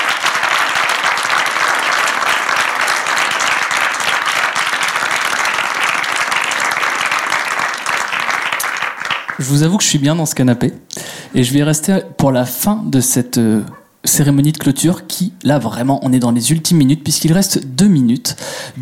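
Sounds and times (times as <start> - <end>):
audience applause: 0.0 - 9.6
speech: 9.4 - 18.8.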